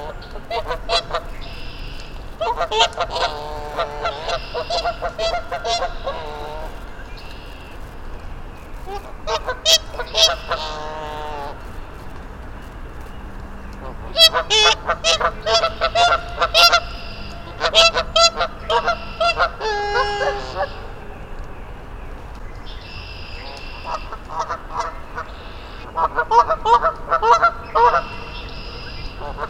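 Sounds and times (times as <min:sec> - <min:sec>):
small flock of geese honking: 0:00.0 - 0:29.4.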